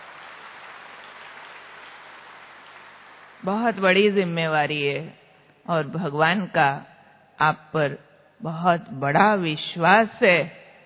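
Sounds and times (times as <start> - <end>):
loud applause: 0.0 - 3.5
speech: 3.4 - 10.6.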